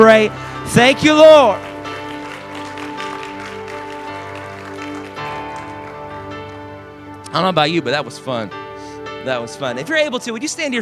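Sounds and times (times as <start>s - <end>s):
speech: 0.0s - 1.7s, 7.3s - 8.6s, 9.2s - 10.7s
audience clapping hands: 0.8s - 6.6s.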